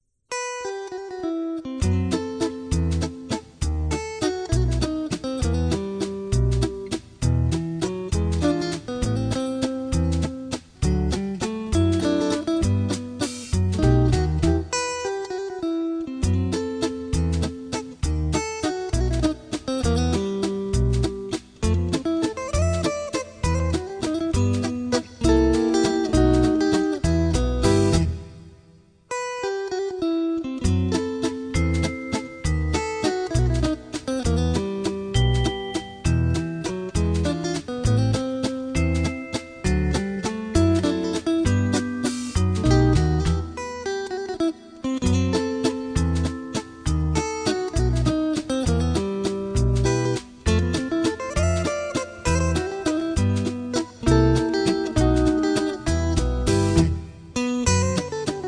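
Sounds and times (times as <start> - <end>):
gentle guitar: 0.3 - 58.4.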